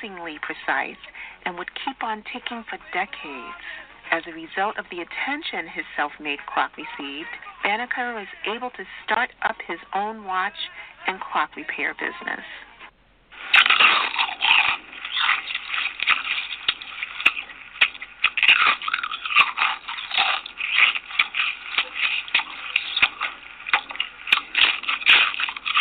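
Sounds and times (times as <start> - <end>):
speech: 0.0 - 12.7
person crunching potato chips: 13.4 - 25.7.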